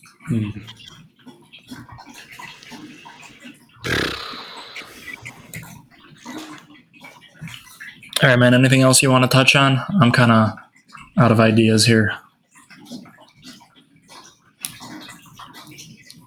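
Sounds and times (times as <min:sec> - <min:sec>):
running water of a cat fountain: 0:00.0 - 0:03.5, 0:06.2 - 0:16.2
speech: 0:00.3 - 0:01.0, 0:08.2 - 0:10.6, 0:11.2 - 0:12.2.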